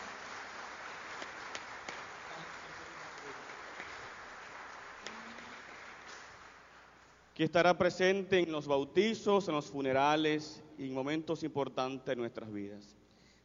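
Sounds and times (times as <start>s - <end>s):
crowd applauding: 0.0s - 7.1s
speech: 7.4s - 13.0s.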